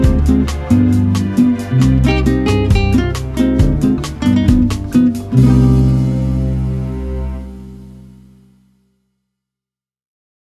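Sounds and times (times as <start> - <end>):
bossa nova music: 0.0 - 8.4.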